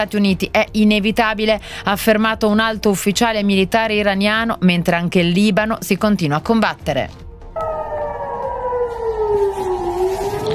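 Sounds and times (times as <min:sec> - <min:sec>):
speech: 0:00.0 - 0:07.2
air raid sirens wailing: 0:07.6 - 0:10.5.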